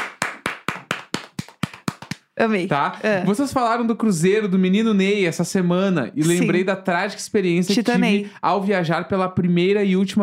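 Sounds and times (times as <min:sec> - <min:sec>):
clapping: 0:00.0 - 0:02.3
speech: 0:02.4 - 0:10.2.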